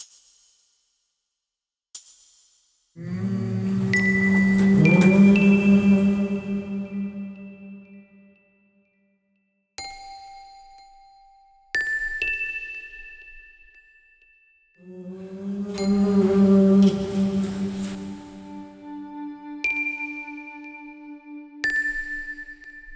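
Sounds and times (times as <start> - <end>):
vocal tai chi music: 3.0 - 8.0, 14.9 - 19.6.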